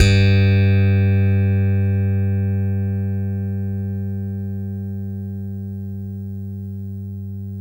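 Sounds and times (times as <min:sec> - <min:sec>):
6-string funk guitar: 0:00.0 - 0:04.1.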